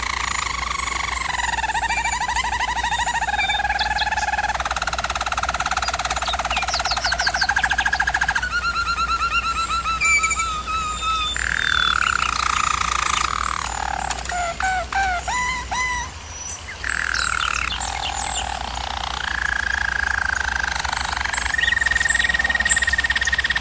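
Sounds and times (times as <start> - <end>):
German Roller canary singing: 0.0 - 23.6.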